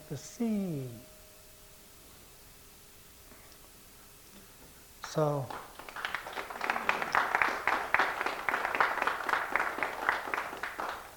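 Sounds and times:
speech: 0.1 - 1.1, 5.2 - 5.6
audience clapping after a poem reading: 5.0 - 11.1.

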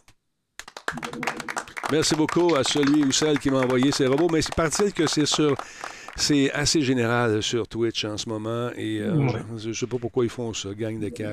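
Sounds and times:
applause: 0.6 - 6.8
speech: 1.0 - 11.3.

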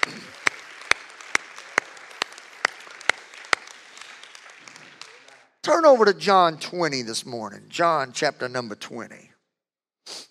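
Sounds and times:
audience clapping hands: 0.0 - 6.9
speech: 5.7 - 9.3.

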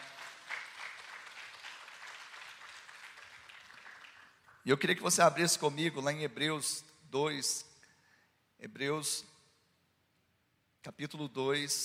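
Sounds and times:
church audience applauding: 0.0 - 4.6
speech: 4.6 - 7.7, 8.6 - 9.3, 10.8 - 11.8.

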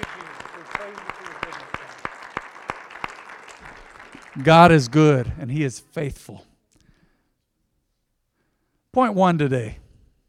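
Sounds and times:
audience clapping: 0.0 - 5.7
speech: 4.4 - 6.5, 9.0 - 9.8.

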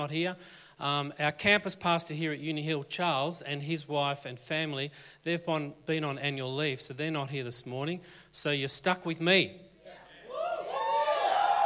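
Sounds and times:
speech: 0.0 - 9.6
audience cheering: 10.2 - 11.6.

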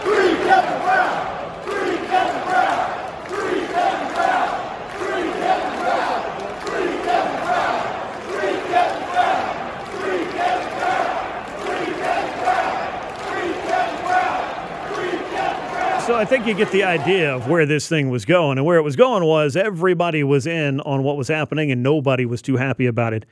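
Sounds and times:
baseball stadium crowd chanting in outcry: 0.0 - 17.6
speech: 16.2 - 23.3.

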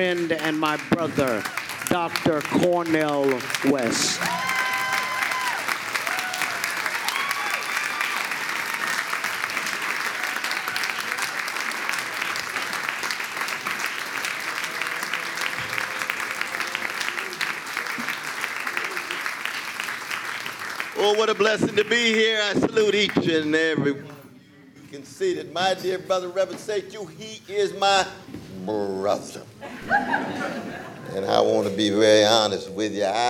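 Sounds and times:
speech: 0.0 - 4.5, 21.2 - 24.1, 24.9 - 33.2
large crowd applauding Dr. Cornel West at a Seattle event: 0.0 - 23.2
laughter: 29.6 - 31.8.

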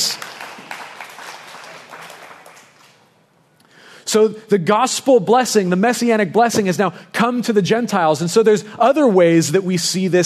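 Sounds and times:
audience clapping: 0.0 - 3.1
speech: 4.1 - 10.2.

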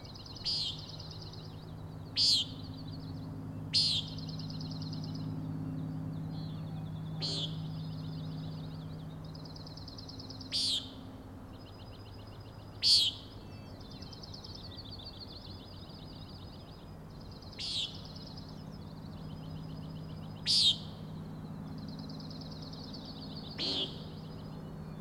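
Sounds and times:
low background hum: 0.0 - 24.9
Common nighthawk peents: 3.8 - 4.1, 7.2 - 7.6, 10.5 - 11.0, 17.6 - 18.0, 20.4 - 20.9, 23.6 - 24.1.

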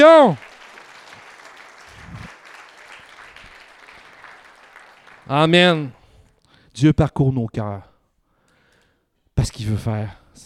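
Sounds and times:
speech: 0.0 - 0.5, 5.3 - 6.0, 6.8 - 7.9, 9.4 - 10.4
audience applauding: 0.0 - 6.1.

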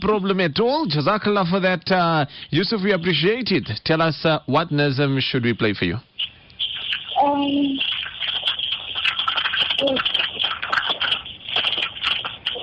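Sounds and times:
speech: 0.0 - 6.3, 7.3 - 7.9
samosas sizzling while frying: 6.1 - 12.6.

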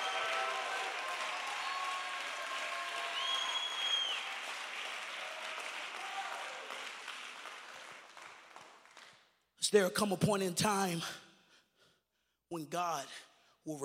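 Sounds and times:
audience clapping hands: 0.0 - 9.4
speech: 9.7 - 11.2, 12.5 - 13.8.

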